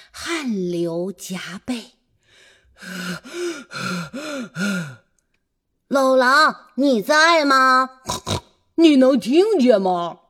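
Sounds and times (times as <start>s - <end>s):
speech: 0.2s - 2.0s, 2.8s - 5.0s, 5.9s - 10.2s
heavy out-of-breath panting with strained groans: 2.8s - 5.0s.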